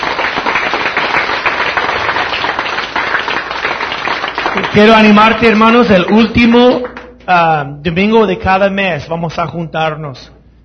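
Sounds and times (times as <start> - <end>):
audience applause: 0.0 - 7.1
speech: 4.7 - 10.4.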